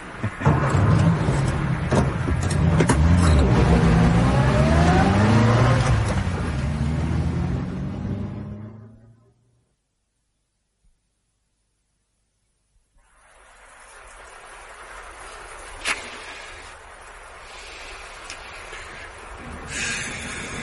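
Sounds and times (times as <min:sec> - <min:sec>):
car engine revving, driven fast autocross style along a common riding track: 0:00.2 - 0:09.3.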